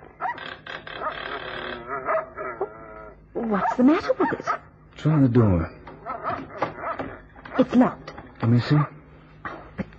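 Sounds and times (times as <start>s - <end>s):
dogs barking: 0.2s - 0.4s, 1.8s - 4.8s, 5.9s - 7.9s
speech: 3.5s - 5.8s, 7.6s - 8.9s.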